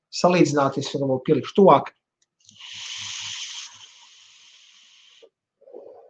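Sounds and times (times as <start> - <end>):
speech: 0.1 - 2.0
airflow hissing through vape tank: 2.5 - 5.3.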